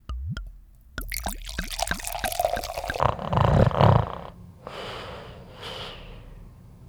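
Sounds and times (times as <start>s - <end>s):
snoring: 2.6s - 6.6s.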